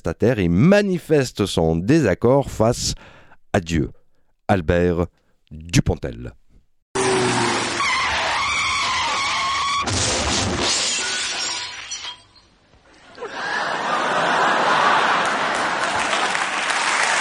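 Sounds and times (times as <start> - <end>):
speech: 0.0 - 6.4
car tires screeching in a skid: 7.0 - 9.9
crash of shattering glass and crunching metal: 9.0 - 12.6
laughter: 13.0 - 16.6.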